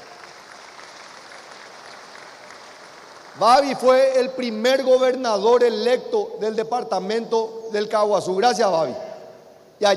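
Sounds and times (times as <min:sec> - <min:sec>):
audience applause: 0:00.0 - 0:03.5
speech: 0:03.4 - 0:09.1, 0:09.8 - 0:09.9.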